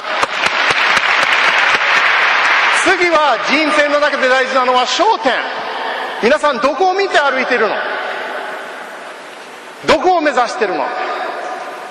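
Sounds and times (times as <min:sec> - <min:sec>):
audience applause at a seminar talk: 0:00.0 - 0:04.4
speech: 0:02.9 - 0:05.6, 0:06.2 - 0:08.0, 0:09.8 - 0:11.1.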